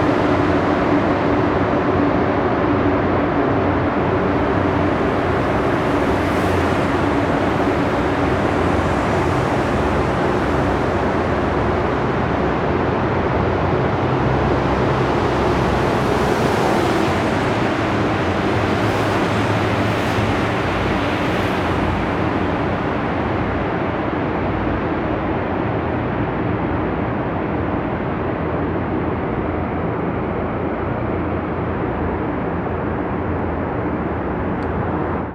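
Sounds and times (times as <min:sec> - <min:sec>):
car in tunnel ambience: 0:00.0 - 0:35.3.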